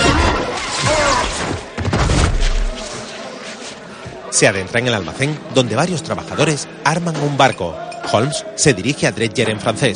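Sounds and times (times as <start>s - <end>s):
man thrown through a shipyard gate crashing onto the floor: 0.1s - 2.8s
speech: 4.4s - 9.9s.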